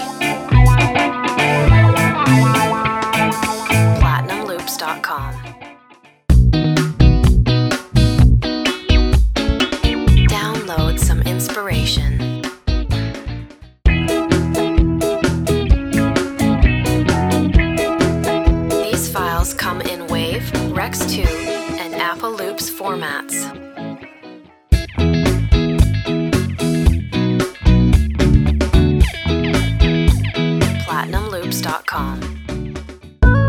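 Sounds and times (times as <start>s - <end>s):
ska guitar loops: 0.0s - 33.4s
voice: 4.0s - 5.5s, 10.3s - 12.3s, 18.8s - 23.5s, 30.8s - 32.3s.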